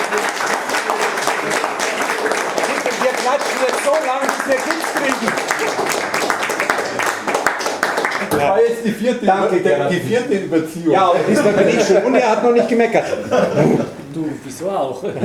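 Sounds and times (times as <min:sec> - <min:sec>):
laughter: 0:00.0 - 0:07.5, 0:08.1 - 0:15.2
audience applause: 0:00.0 - 0:08.5
speech: 0:03.9 - 0:06.2, 0:08.4 - 0:15.2.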